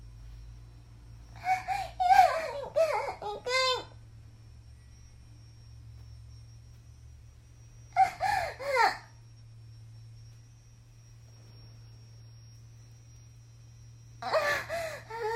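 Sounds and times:
22-year-old woman moaning and climaxing: 1.4 - 3.9, 14.2 - 15.3.

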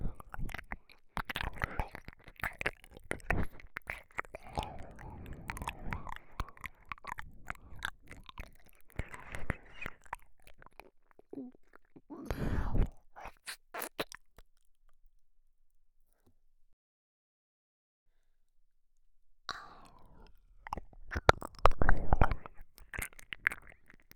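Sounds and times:
ASMR ear licking: 0.1 - 14.6, 19.5 - 24.1.

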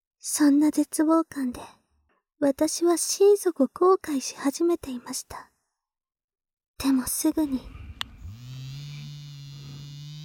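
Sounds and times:
speech: 0.2 - 1.8, 2.4 - 5.5, 6.8 - 7.8
small electric massager buzzing: 8.0 - 10.2.

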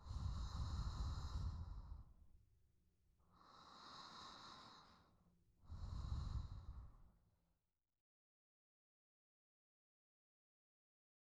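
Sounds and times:
sleeping breath: 0.0 - 2.2, 3.4 - 7.0.

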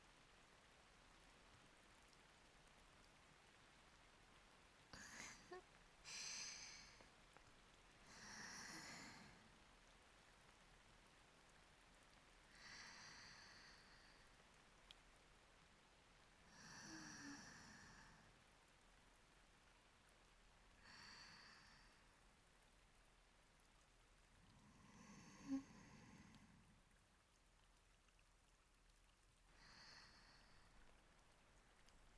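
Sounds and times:
rain: 0.0 - 32.1
breathing: 5.0 - 7.1, 12.5 - 14.4, 20.8 - 22.2, 24.6 - 26.7, 29.5 - 31.0.

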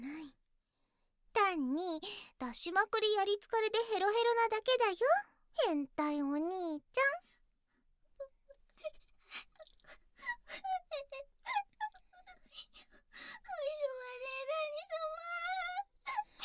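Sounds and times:
speech: 1.8 - 7.4, 8.8 - 11.3
girl crying: 10.3 - 16.4.

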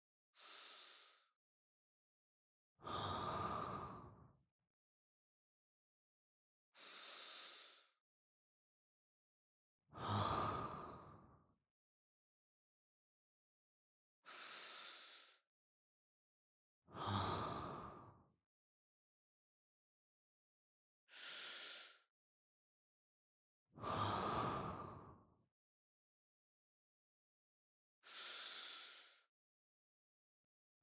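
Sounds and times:
person breathing in sleep: 0.4 - 1.3, 2.8 - 4.2, 6.8 - 7.9, 10.0 - 11.3, 14.3 - 15.4, 16.9 - 18.1, 21.1 - 22.1, 23.8 - 25.2, 28.0 - 29.3.

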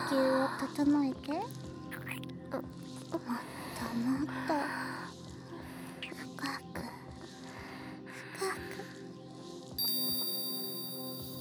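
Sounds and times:
speech: 0.1 - 5.1
hypnosis bell ringing: 9.8 - 11.3.

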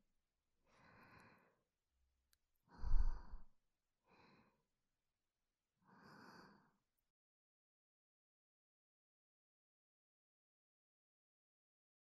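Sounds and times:
soft angelic breathing: 0.7 - 1.6, 2.7 - 3.5, 5.9 - 6.8.

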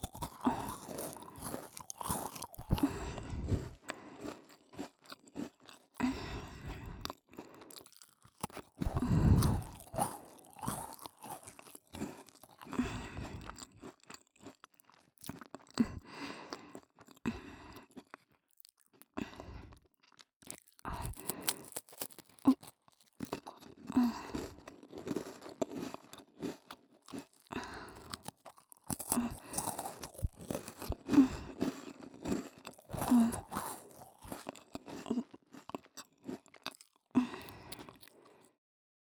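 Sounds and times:
ASMR cookie sounds: 0.0 - 6.6, 8.4 - 13.2, 20.8 - 36.4.

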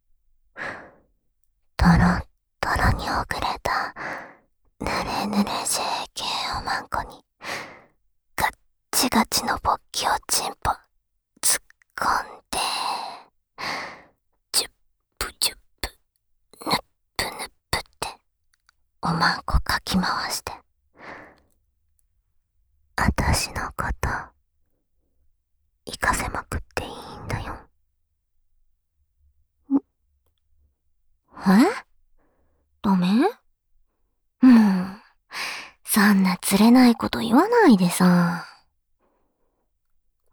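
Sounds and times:
seductive whispering: 1.8 - 4.0, 4.8 - 7.3, 8.4 - 13.3, 14.6 - 16.0, 16.6 - 18.2, 19.0 - 20.6, 23.0 - 24.4, 25.9 - 27.7, 31.4 - 31.9, 32.8 - 33.4, 35.9 - 38.7.

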